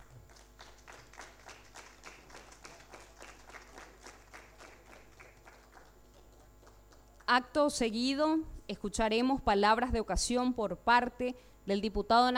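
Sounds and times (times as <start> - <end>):
strong applause: 0.0 - 7.3
speech: 7.3 - 12.3.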